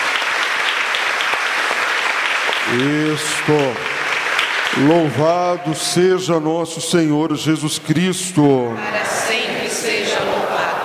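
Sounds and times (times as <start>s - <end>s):
audience applauding: 0.0s - 6.6s
speech: 2.7s - 3.9s, 4.8s - 10.8s.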